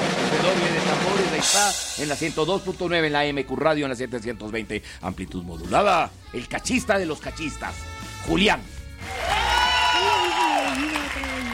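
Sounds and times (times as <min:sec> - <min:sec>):
speech: 0:00.5 - 0:09.4
crowd applauding: 0:09.0 - 0:11.5
voices cheering bravo: 0:09.0 - 0:11.5.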